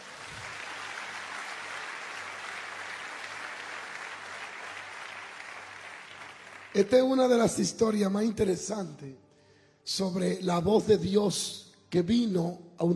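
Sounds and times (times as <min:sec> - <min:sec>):
audience applause: 0:00.0 - 0:07.2
speech: 0:06.8 - 0:09.2, 0:09.8 - 0:12.9.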